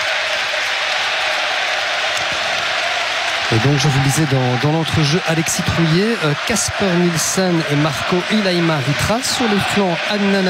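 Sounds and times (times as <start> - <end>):
stadium crowd applauding: 0.0 - 10.4
speech: 3.5 - 10.4.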